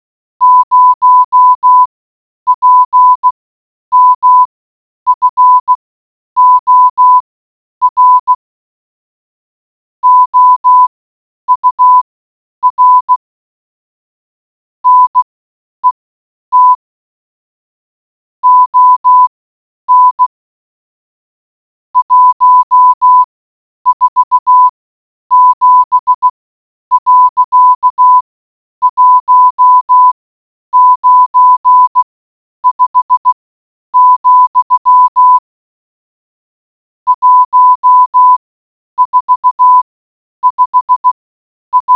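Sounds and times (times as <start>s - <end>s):
morse code beeps: 0.4s - 1.9s, 2.5s - 4.5s, 5.1s - 5.8s, 6.4s - 7.2s, 7.8s - 8.4s, 10.0s - 10.9s, 11.5s - 12.0s, 12.6s - 13.2s, 14.8s - 16.8s, 18.4s - 19.3s, 19.9s - 20.3s, 22.0s - 23.3s, 23.9s - 28.2s, 28.8s - 33.4s, 34.0s - 35.5s, 37.1s - 38.4s, 39.0s - 39.8s, 40.4s - 41.9s.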